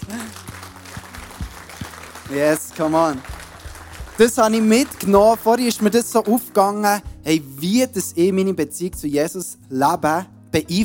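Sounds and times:
audience applause: 0.0s - 6.1s
speech: 2.3s - 3.3s, 4.2s - 10.8s.

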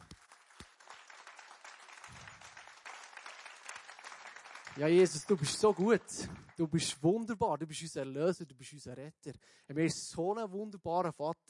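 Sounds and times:
audience applause: 0.0s - 6.8s
speech: 4.8s - 11.4s.

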